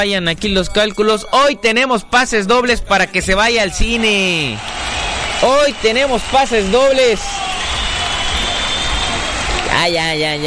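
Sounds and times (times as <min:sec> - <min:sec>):
speech: 0:00.0 - 0:04.8, 0:05.4 - 0:07.4, 0:09.8 - 0:10.4
applause: 0:03.8 - 0:10.4.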